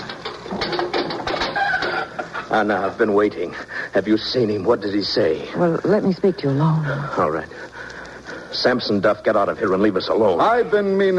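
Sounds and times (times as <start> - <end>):
jail door unlocking: 0.0 - 2.2
jail door hinges squealing: 0.0 - 2.5
speech: 2.5 - 7.8, 8.6 - 11.1.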